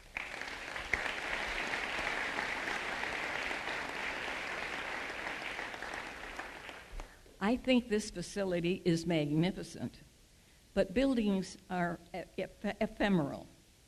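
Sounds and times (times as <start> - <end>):
crowd applause: 0.0 - 7.2
speech: 7.4 - 10.1, 10.8 - 13.6.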